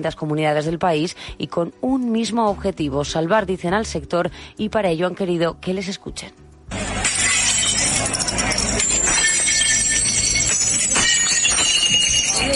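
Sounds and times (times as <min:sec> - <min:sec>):
speech: 0:00.0 - 0:06.4
plates smashed in protest: 0:06.9 - 0:12.5.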